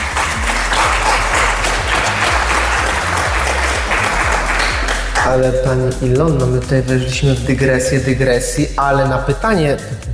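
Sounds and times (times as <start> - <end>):
audience applause: 0.0 - 5.3
speech: 5.3 - 10.1.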